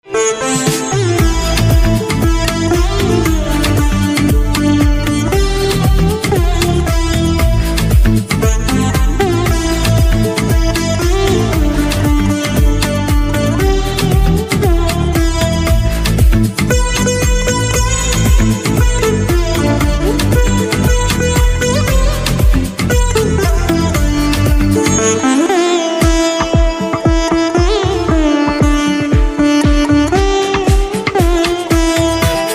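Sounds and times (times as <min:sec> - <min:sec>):
veena: 0:00.0 - 0:32.5.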